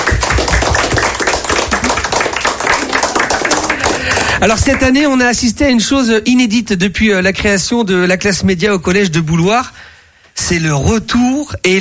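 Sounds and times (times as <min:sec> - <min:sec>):
students applauding: 0:00.0 - 0:05.1
speech: 0:04.4 - 0:11.7.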